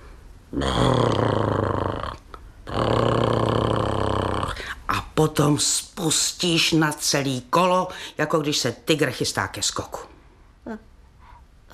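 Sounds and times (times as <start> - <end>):
speech: 0.5 - 1.4, 5.2 - 10.1
person imitating loud snoring: 0.5 - 4.7.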